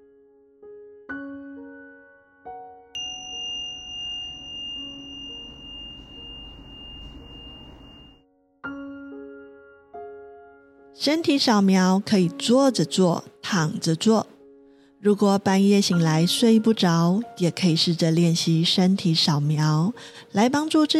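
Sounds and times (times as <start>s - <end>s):
meditation bell ringing: 3.0s - 8.2s
speech: 11.0s - 14.3s, 15.0s - 20.9s.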